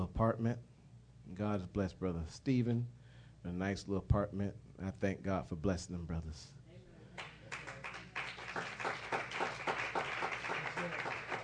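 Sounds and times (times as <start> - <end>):
speech: 0.0 - 0.7, 1.3 - 6.6
audience clapping: 7.2 - 11.4.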